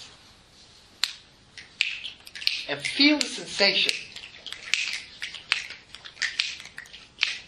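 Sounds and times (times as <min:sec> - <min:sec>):
finger snap: 0:01.0 - 0:03.3, 0:03.9 - 0:07.4
speech: 0:02.7 - 0:04.1.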